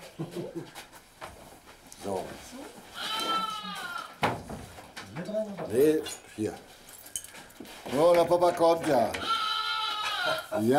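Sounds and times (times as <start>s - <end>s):
sheep bleating: 2.9s - 4.2s, 9.2s - 10.7s
speech: 5.7s - 6.7s, 8.0s - 9.4s, 10.6s - 10.7s.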